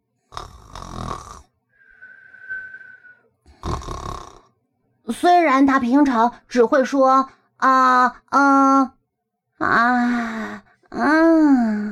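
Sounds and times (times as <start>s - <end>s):
snoring while dozing: 0.2s - 1.6s, 3.5s - 4.5s
whistling breath: 1.7s - 3.4s
speech: 5.1s - 9.0s, 9.6s - 11.8s.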